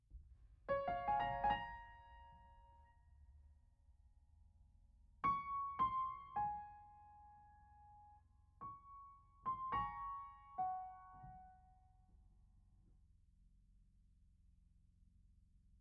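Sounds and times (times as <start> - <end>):
piano: 0.6 - 3.1, 5.2 - 12.3.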